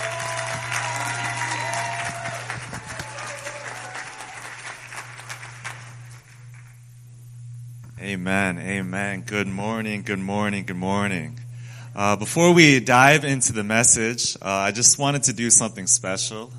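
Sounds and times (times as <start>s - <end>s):
church congregation clapping to welcome a pastor at a Pentecost Sunday service: 0.0s - 6.7s
constant low hum: 0.0s - 16.5s
speech: 8.0s - 11.4s, 12.0s - 16.5s.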